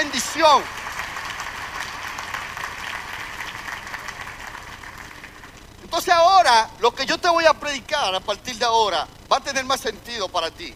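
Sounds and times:
audience applause: 0.0s - 5.6s
speech: 0.4s - 0.8s, 5.9s - 10.7s.

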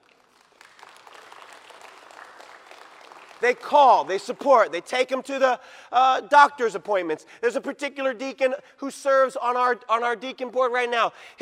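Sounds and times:
audience applauding: 0.0s - 4.7s
speech: 3.4s - 11.4s.

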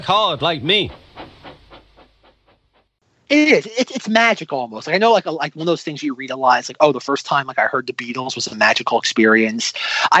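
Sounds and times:
speech: 0.0s - 1.0s, 3.3s - 10.1s
low rumble: 0.0s - 2.9s
steam engine chuffing: 0.0s - 3.0s.

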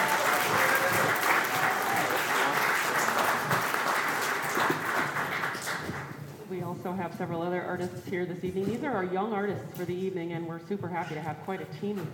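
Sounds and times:
audience applause: 0.0s - 6.1s
speech: 7.1s - 12.1s.

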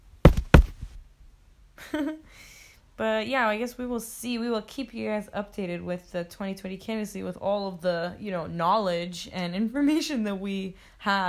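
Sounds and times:
knocking on wood: 0.2s - 0.9s
speech: 1.9s - 11.2s.

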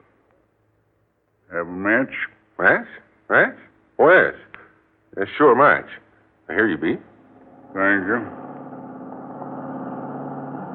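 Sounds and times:
speech: 1.5s - 4.5s, 5.2s - 7.1s, 7.7s - 8.4s
car engine pulling up at a gas station: 7.4s - 10.7s.

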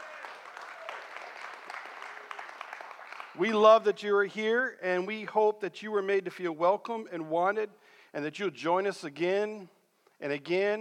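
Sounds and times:
church congregation applauding its guests: 0.0s - 3.9s
speech: 3.4s - 10.7s.

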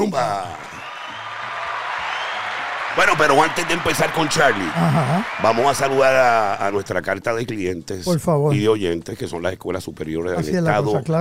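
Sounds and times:
speech: 0.0s - 0.6s, 3.0s - 11.1s
applause: 0.0s - 7.2s.

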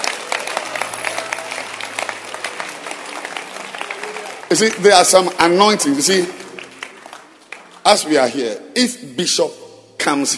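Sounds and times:
hand clapping: 0.0s - 8.0s
speech: 4.5s - 6.4s, 7.9s - 10.3s.

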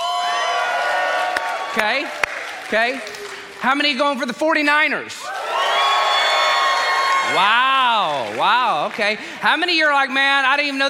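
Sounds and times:
audience cheering and whooping: 0.0s - 3.5s, 5.2s - 9.0s
speech: 1.8s - 5.3s, 7.3s - 10.8s.

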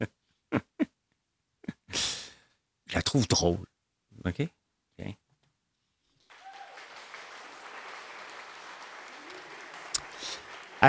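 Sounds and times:
speech: 3.1s - 5.2s
person clapping their own hands: 6.3s - 10.8s.

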